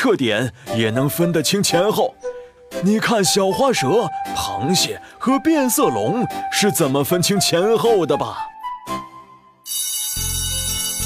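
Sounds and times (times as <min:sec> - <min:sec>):
speech: 0:00.0 - 0:09.0
school bell ringing: 0:09.6 - 0:11.0.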